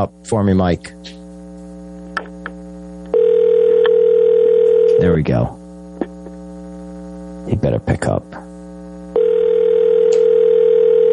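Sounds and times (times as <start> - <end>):
speech: 0.0 - 1.2, 5.0 - 5.6, 7.4 - 8.4
telephone ringing on a call: 3.1 - 5.0, 9.2 - 11.1.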